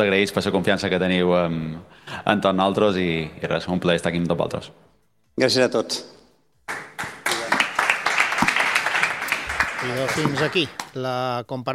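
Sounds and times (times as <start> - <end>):
speech: 0.0 - 4.8, 5.4 - 7.1, 9.8 - 11.7
audience applause: 6.7 - 11.0.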